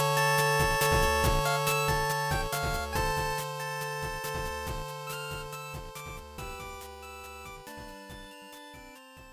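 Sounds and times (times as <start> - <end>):
mid-battle music: 0.0 - 6.5.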